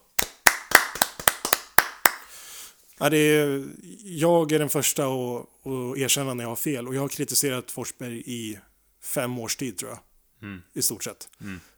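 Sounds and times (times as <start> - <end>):
hand clapping: 0.0 - 2.4
speech: 3.0 - 11.7.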